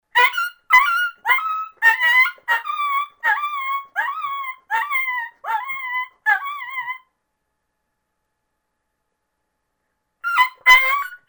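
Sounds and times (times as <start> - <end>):
coyote pup distress call: 0.2 - 7.0, 10.3 - 11.2.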